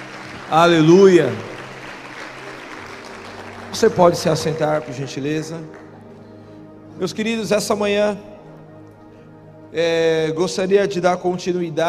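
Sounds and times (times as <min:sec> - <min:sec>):
audience applauding: 0:00.0 - 0:06.4
speech: 0:00.5 - 0:01.5, 0:03.8 - 0:05.8, 0:07.0 - 0:08.3, 0:09.7 - 0:11.8.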